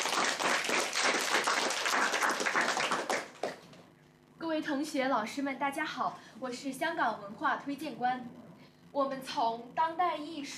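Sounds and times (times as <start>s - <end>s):
audience applause: 0.0s - 3.7s
speech: 4.7s - 10.5s.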